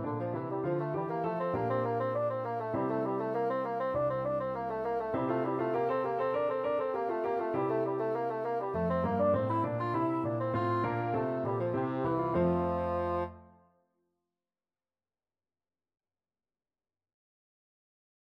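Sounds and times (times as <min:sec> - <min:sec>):
bassoon: 0:00.0 - 0:13.6.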